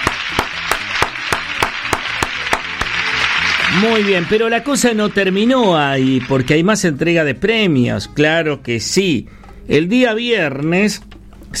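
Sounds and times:
audience applause: 0.0 - 6.9
speech: 3.8 - 11.5.

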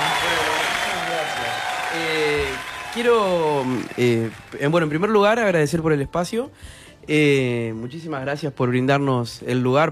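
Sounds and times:
audience applause: 0.0 - 5.3
speech: 3.0 - 9.9.

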